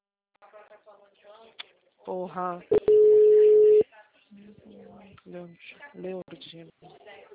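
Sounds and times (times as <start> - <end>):
speech: 0.7 - 2.9, 5.3 - 7.2
telephone tone after a dropped call: 2.7 - 3.8.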